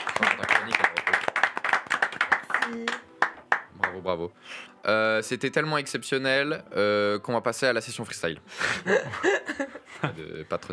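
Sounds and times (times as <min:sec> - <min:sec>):
applause: 0:00.0 - 0:04.1
speech: 0:00.2 - 0:00.9, 0:02.7 - 0:03.0, 0:04.0 - 0:10.7.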